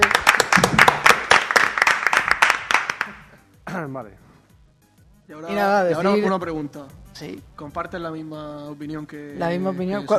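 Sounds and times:
applause: 0.0 - 3.4
speech: 3.9 - 4.3, 5.3 - 10.1.

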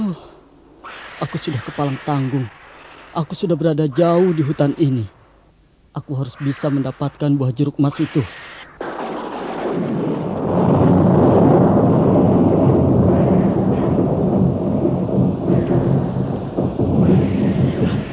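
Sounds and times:
speech: 0.1 - 0.3, 1.2 - 5.2, 6.0 - 8.6
deep rolling thunder in a forest thunderstorm: 8.8 - 18.1
pouring rain in a forest thunderstorm: 10.7 - 18.1.

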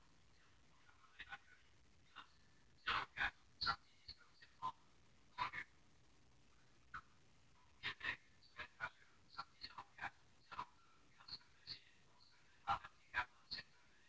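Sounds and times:
Eloquence text-to-speech synthesized voice from a phone: 2.2 - 4.8, 7.8 - 14.0.

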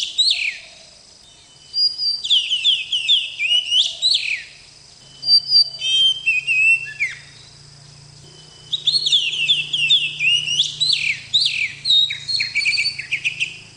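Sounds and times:
Oriental magpie-robin singing: 0.0 - 13.7.

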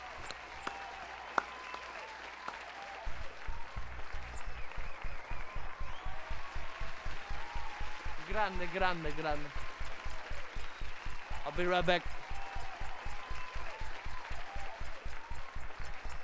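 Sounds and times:
rhythmic applause: 0.0 - 16.2
speech: 8.4 - 9.6, 11.6 - 12.2.

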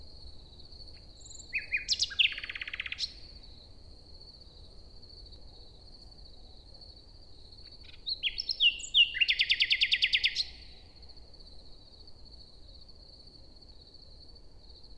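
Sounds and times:
common nightingale singing morning song in a forest in Luxembourg: 1.0 - 3.4, 7.8 - 10.8.

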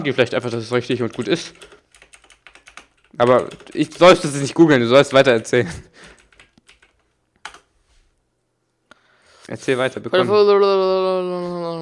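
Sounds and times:
speech: 0.0 - 1.8, 3.2 - 6.1, 9.5 - 11.8
typing on a computer keyboard: 0.0 - 7.7.

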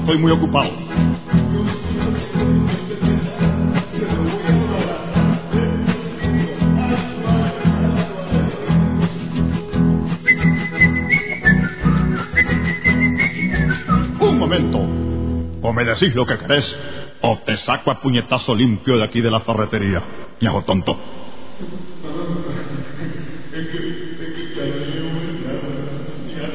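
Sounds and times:
speech: 0.0 - 0.8, 15.7 - 21.9
dense steady low noise: 0.0 - 26.5
person whistling a short high tune in a hardware store: 6.1 - 7.2, 10.2 - 14.2.

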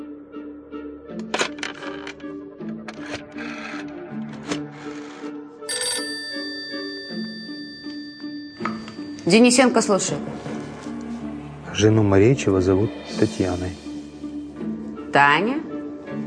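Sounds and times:
old telephone ringing in a corridor: 4.5 - 10.1
speech: 9.3 - 10.5, 11.8 - 13.9, 15.2 - 15.6.

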